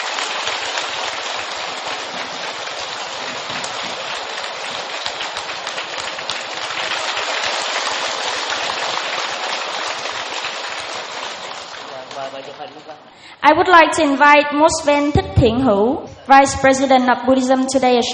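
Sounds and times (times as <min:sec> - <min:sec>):
big round of applause: 0:00.0 - 0:13.0
speech: 0:13.5 - 0:18.1.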